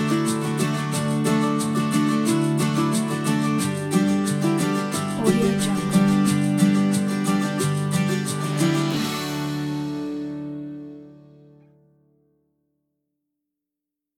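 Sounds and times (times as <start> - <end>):
upbeat happy inspiring music: 0.0 - 9.3.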